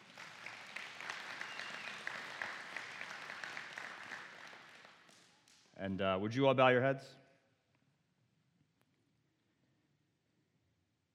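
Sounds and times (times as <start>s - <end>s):
people clapping: 0.0s - 5.8s
speech: 5.8s - 7.2s.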